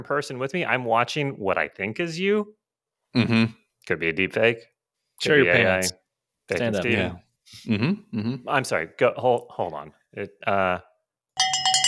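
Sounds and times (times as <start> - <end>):
speech: 0.0 - 11.6
high metallic bell ringing: 11.4 - 11.8.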